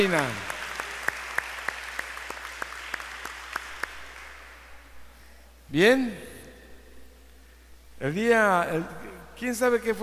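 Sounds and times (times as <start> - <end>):
speech: 0.0 - 0.5, 5.7 - 6.3, 8.0 - 10.0
audience applause: 0.0 - 4.4.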